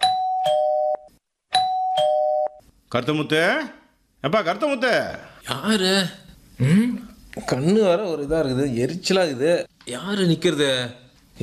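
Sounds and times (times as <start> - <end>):
electronic doorbell chime at a house: 0.0 - 2.6
speech: 2.9 - 11.4.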